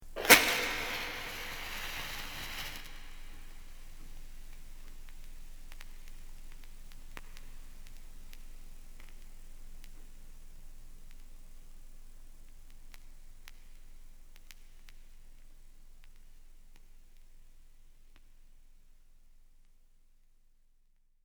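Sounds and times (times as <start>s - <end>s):
torch fire being lit: 0.0s - 3.9s.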